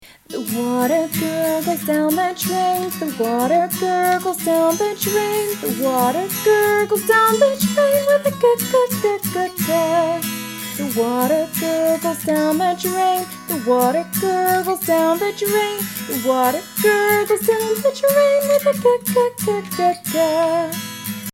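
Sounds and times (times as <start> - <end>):
children's alphabet phonics song: 0.0 - 20.8.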